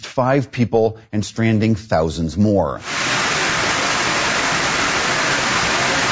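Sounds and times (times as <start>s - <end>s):
speech: 0.2s - 3.0s
stormwater cascading through buildings: 2.8s - 6.1s.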